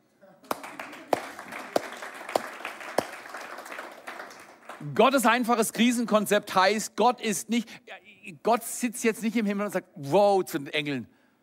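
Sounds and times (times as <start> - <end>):
audience clapping: 0.4 - 5.4
speech: 4.8 - 11.2.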